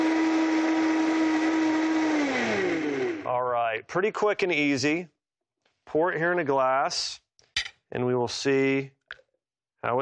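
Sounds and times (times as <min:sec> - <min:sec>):
blender blending a chocolate drink: 0:00.0 - 0:03.3
speech: 0:03.8 - 0:05.1, 0:05.9 - 0:07.2, 0:07.9 - 0:09.0.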